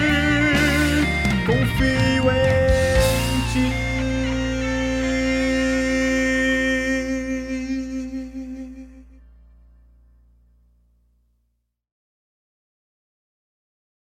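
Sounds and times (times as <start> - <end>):
tenor: 0.0 - 10.4.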